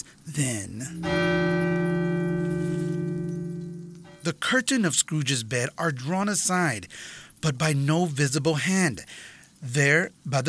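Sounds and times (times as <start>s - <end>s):
speech: 0.4s - 1.5s, 4.3s - 10.4s
clock striking twelve: 0.8s - 4.3s.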